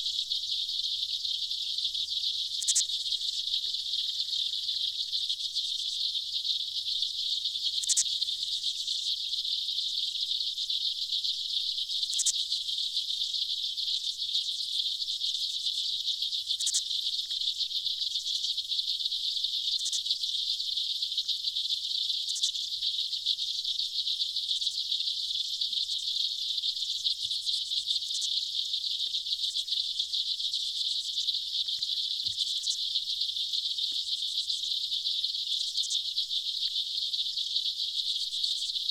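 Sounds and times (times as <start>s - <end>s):
aquatic insects: 0.0s - 38.9s.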